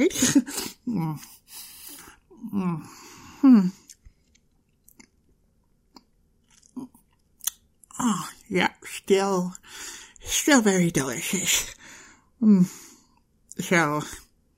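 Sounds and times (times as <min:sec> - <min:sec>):
speech: 0:00.0 - 0:01.4, 0:02.4 - 0:03.8, 0:08.0 - 0:12.8, 0:13.6 - 0:14.2
person eating a piece of chocolate: 0:03.8 - 0:08.0.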